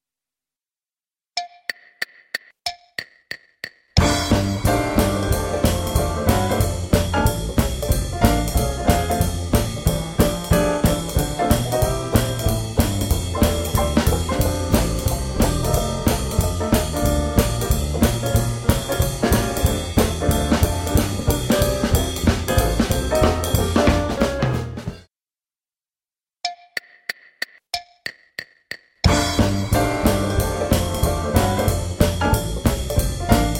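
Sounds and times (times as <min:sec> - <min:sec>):
backing music: 0:04.0 - 0:25.1, 0:29.0 - 0:33.5.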